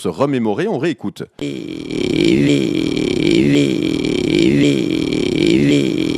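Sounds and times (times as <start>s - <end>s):
speech: 0.0s - 6.1s
voice imitating an idling rally car: 1.4s - 6.1s.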